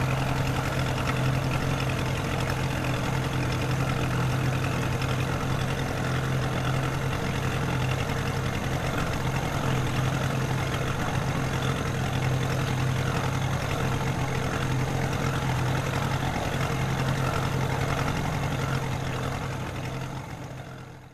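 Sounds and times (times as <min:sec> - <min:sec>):
boat motor starting and moving off: 0:00.0 - 0:20.8.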